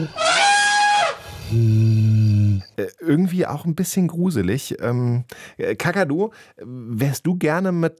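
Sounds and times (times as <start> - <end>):
imagined mammoth call, deep elephant-like: 0.1 - 1.6
speech: 2.8 - 7.9.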